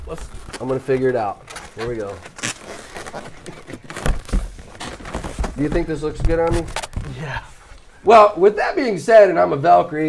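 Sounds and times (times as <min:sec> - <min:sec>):
balloons being handled, rubbing and squeaking: 0:00.0 - 0:08.0
speech: 0:00.1 - 0:02.3, 0:05.6 - 0:10.0.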